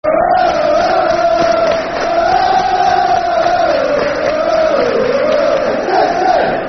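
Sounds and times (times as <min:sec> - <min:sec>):
football chant: 0:00.0 - 0:06.6.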